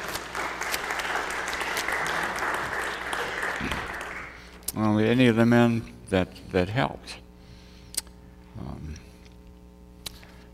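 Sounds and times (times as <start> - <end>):
audience applause: 0.0 - 4.5
speech: 4.8 - 7.2.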